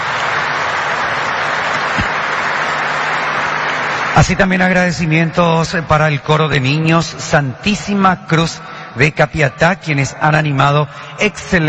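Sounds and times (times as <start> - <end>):
audience applause: 0.0 - 5.3
speech: 4.2 - 11.6.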